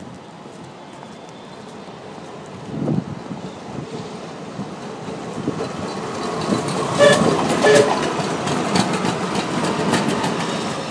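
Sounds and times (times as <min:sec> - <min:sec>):
tram approaching: 0:00.0 - 0:10.8
tram horn tooting: 0:06.8 - 0:08.3.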